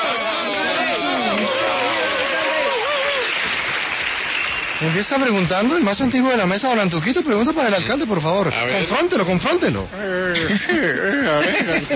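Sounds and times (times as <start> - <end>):
audience applause: 0.0 - 6.4
speech: 4.8 - 11.9
laughter: 10.0 - 11.9.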